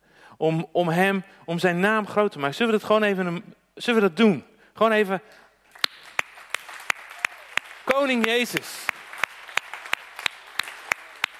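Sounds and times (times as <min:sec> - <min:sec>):
speech: 0:00.4 - 0:05.4, 0:08.0 - 0:08.9
audience applause: 0:05.7 - 0:11.3.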